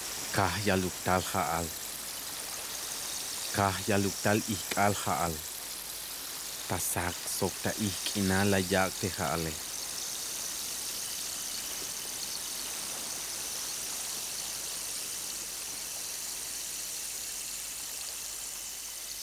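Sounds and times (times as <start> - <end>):
steady hissing black rain in a radio drama: 0.0 - 17.0
person speaking: 0.3 - 1.8, 3.5 - 5.4, 6.7 - 9.6.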